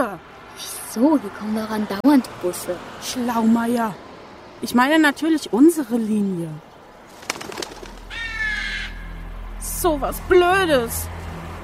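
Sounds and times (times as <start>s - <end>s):
speech: 1.0s - 6.7s, 9.8s - 11.2s
bird calling: 7.1s - 9.5s.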